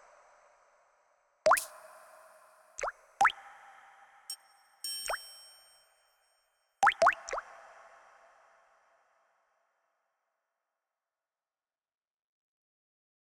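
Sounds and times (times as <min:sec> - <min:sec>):
water drops: 0:01.5 - 0:03.4, 0:04.8 - 0:05.6, 0:06.8 - 0:07.4.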